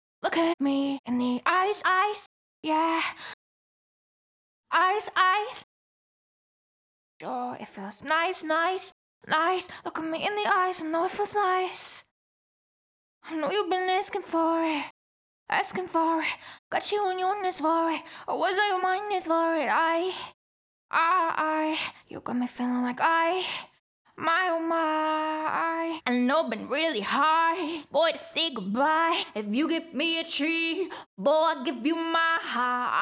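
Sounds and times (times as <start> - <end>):
a cappella pop vocals in E major: 0.2 - 3.3, 4.7 - 5.7, 7.2 - 12.1, 13.3 - 33.0.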